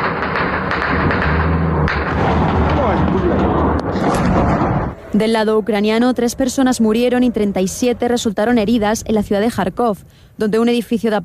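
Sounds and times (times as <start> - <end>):
bombing and artillery fire in the war in Ukraine: 0.0 - 5.2
continuous low rumble: 0.9 - 11.2
speech: 5.1 - 11.2.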